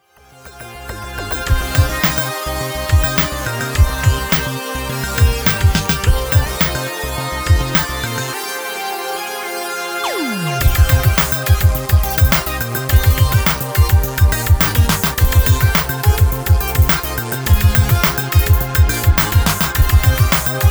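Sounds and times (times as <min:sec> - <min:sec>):
workout music at 105 bpm: 0:01.0 - 0:08.5, 0:10.0 - 0:20.6.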